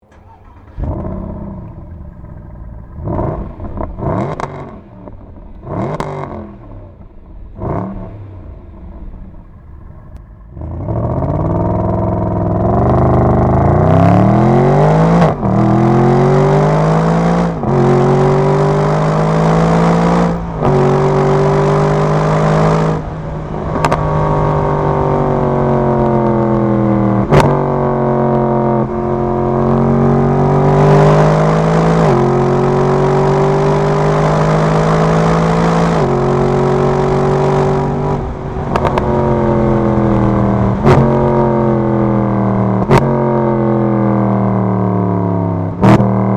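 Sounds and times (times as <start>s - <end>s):
Mercedes Benz SLS AMG engine: 0.0s - 46.3s.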